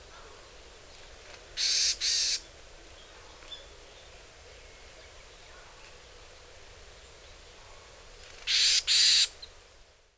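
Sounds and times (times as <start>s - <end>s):
yamagara varied tit calls in Hyogo: 1.6s - 2.4s, 8.5s - 9.3s.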